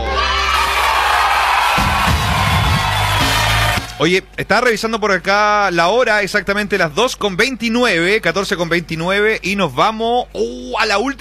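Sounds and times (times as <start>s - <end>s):
audience applause: 0.0s - 4.0s
speech: 4.0s - 11.2s.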